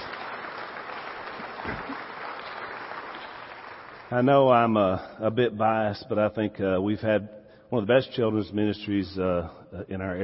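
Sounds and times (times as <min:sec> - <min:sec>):
round of applause from a crowd: 0:00.0 - 0:04.7
speech: 0:04.1 - 0:10.2.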